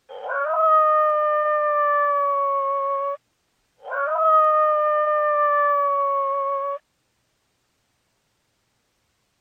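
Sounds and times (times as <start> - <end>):
coyote howling: 0.1 - 3.2, 3.8 - 6.8.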